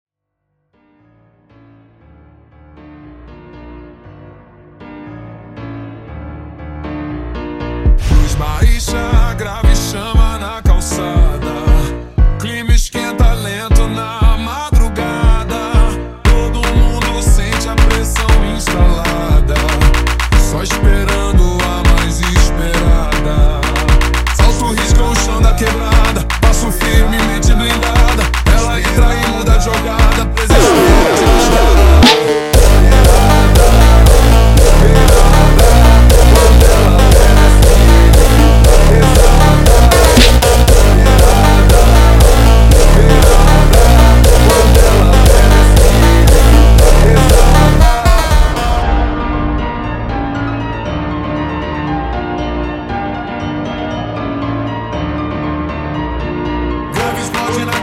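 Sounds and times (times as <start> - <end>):
super slowed funk music: 7.4 - 53.0.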